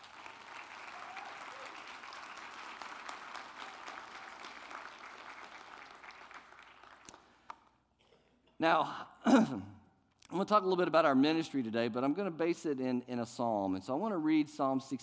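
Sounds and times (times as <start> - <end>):
audience applause: 0.0 - 7.4
speech: 8.6 - 15.0.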